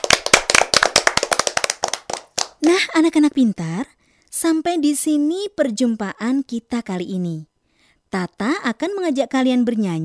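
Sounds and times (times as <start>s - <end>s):
children clapping hands after singing: 0.0s - 2.8s
speech: 2.7s - 7.5s, 8.1s - 10.0s.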